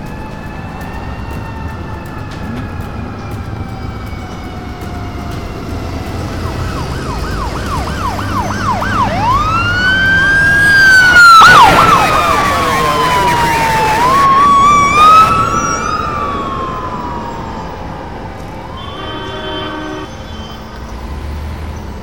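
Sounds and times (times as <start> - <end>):
police car siren approaching from behind: 0.0 - 22.0
steady road rumble: 0.0 - 22.0.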